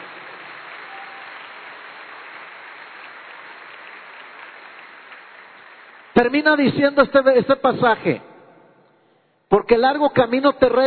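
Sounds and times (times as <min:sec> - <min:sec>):
church congregation applause during a sermon: 0:00.0 - 0:07.2
speech: 0:06.2 - 0:08.3, 0:09.5 - 0:10.8.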